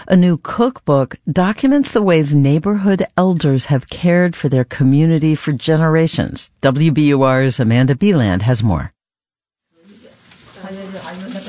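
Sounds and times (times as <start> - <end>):
speech: 0.1 - 9.0
boiled vegetables sizzling in a hot frying pan in a Chinatown kitchen in Boston: 9.8 - 11.4.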